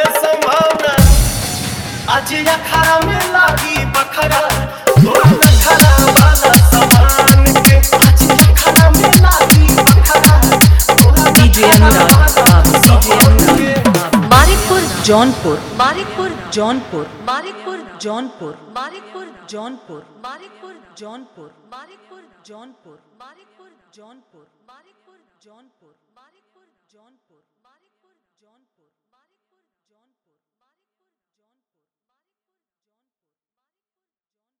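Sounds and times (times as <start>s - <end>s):
dholki bass mix: 0.0s - 17.2s.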